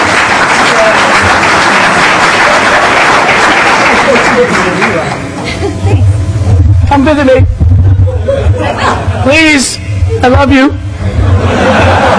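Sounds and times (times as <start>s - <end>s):
crowd applause: 0.0s - 5.6s, 11.1s - 12.1s
laughter: 0.8s - 6.2s, 7.8s - 9.4s, 11.0s - 12.1s
speech: 7.0s - 7.5s, 9.2s - 10.8s.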